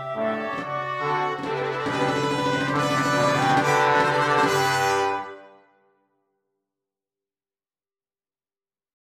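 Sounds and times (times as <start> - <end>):
march played by a military oboist corps: 0.0 - 5.4.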